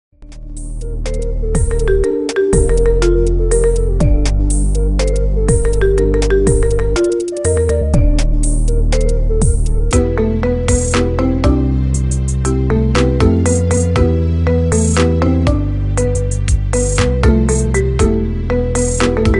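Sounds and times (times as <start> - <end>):
marimba remix: 0.3 - 19.3.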